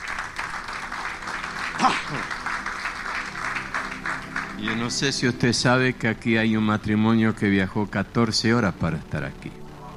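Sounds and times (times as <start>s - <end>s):
audience welcoming applause: 0.0s - 5.5s
speech: 1.8s - 2.4s, 4.6s - 9.6s.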